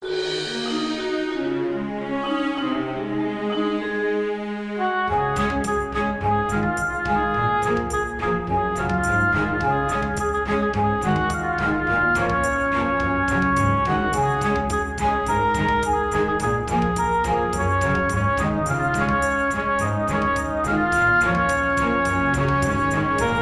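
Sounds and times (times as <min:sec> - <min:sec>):
orchestral remix: 0:00.0 - 0:23.4.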